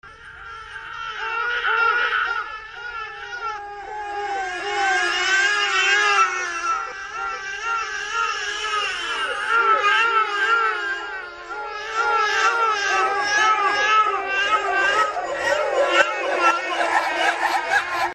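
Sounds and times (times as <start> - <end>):
creepy baby crying: 0.2 - 18.1
laughter: 0.5 - 18.1.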